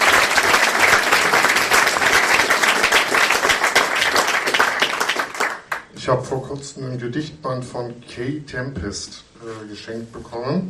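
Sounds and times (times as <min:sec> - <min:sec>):
audience applause: 0:00.0 - 0:05.8
speech: 0:06.1 - 0:10.6.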